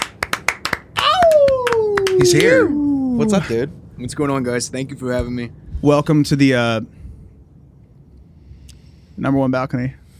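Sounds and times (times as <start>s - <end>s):
small round of applause: 0.0s - 2.8s
speech: 2.2s - 7.0s, 9.2s - 10.0s.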